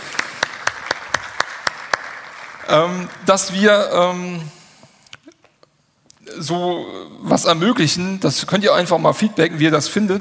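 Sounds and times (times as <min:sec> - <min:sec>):
small audience applause: 0:00.0 - 0:03.2
speech: 0:02.7 - 0:04.6, 0:06.4 - 0:10.1.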